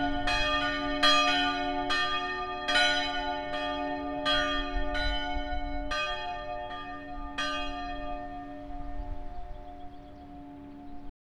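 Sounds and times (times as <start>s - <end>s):
bells of St Anna church in Schwendi: 0.0s - 11.1s.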